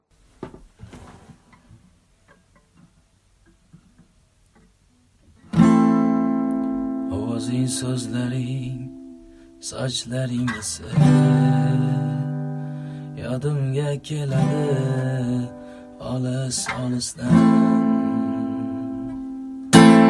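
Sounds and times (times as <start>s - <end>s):
live guitar: 5.4s - 20.0s.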